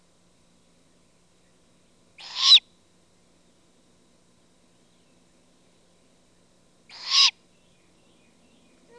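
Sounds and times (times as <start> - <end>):
great horned owl juvenile hissing screeches: 2.2 - 2.7, 6.9 - 7.4.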